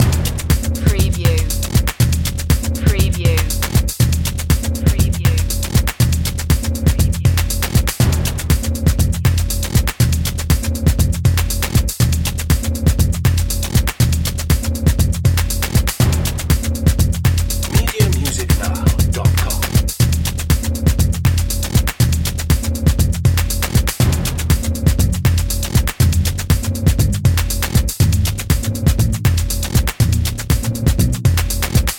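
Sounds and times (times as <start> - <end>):
voodoo dance music loop: 0.0 - 31.9.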